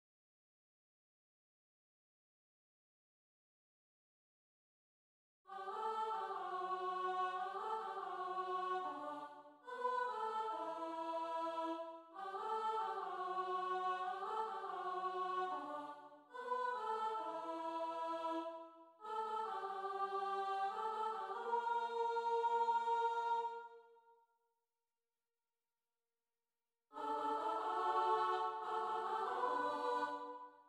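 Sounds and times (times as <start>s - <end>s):
soprano and alto voices: 5.5s - 23.8s, 27.0s - 30.5s.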